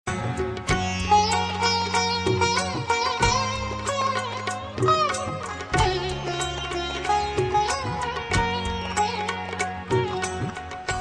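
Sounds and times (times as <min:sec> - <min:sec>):
concert music: 0:00.1 - 0:11.0.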